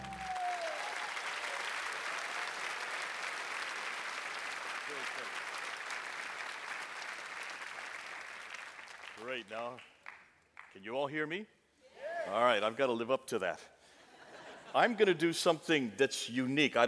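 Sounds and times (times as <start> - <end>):
church congregation clapping to welcome a visiting missionary speaker: 0.0 - 10.8
speech: 9.2 - 9.9, 10.8 - 11.6, 12.3 - 13.8, 14.7 - 16.8.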